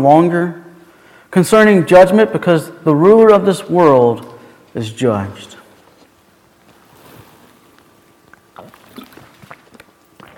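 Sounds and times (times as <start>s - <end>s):
speech: 0.0s - 0.6s, 1.3s - 5.6s
person sipping water from the pulpit: 6.7s - 10.3s.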